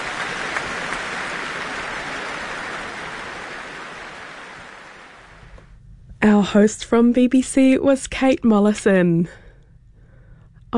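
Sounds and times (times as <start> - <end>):
concert hall audience applause: 0.0 - 5.3
speech: 6.3 - 9.4.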